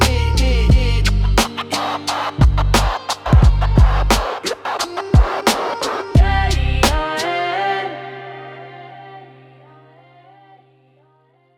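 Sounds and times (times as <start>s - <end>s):
rap music: 0.0s - 7.2s.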